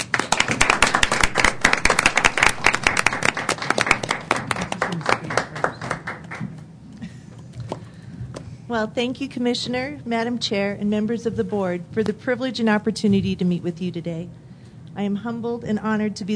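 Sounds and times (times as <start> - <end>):
audience applause: 0.0 - 6.5
speech: 8.7 - 14.4, 15.0 - 16.3.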